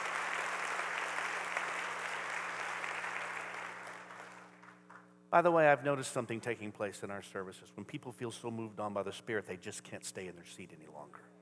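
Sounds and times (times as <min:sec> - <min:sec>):
audience clapping in praise: 0:00.0 - 0:05.1
speech: 0:05.3 - 0:11.3.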